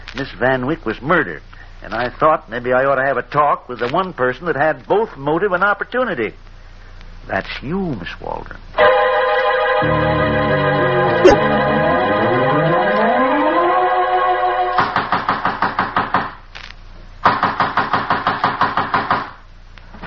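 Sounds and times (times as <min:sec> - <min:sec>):
speech: 0:00.2 - 0:06.5, 0:07.2 - 0:08.9, 0:09.8 - 0:11.7
sustained tonal music with a falling glide: 0:09.6 - 0:14.8
loud rapid pounding on a door: 0:14.8 - 0:16.4, 0:17.2 - 0:19.4.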